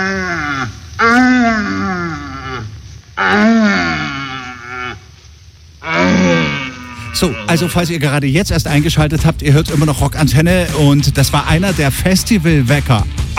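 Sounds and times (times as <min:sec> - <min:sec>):
red deer stags bellowing: 0:00.0 - 0:05.1, 0:05.8 - 0:07.8
speech: 0:07.2 - 0:13.3.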